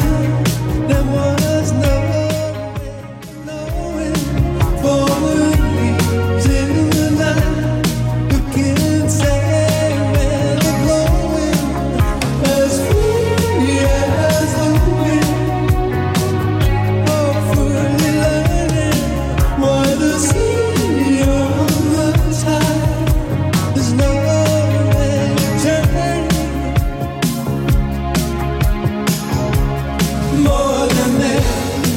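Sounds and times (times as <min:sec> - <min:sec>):
clean 80s drum machine beat: 0:00.0 - 0:31.9.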